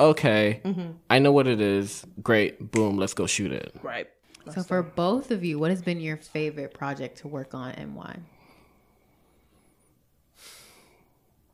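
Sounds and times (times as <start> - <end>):
speech: 0.0 - 8.3
sharp breathy exhale: 8.4 - 11.2.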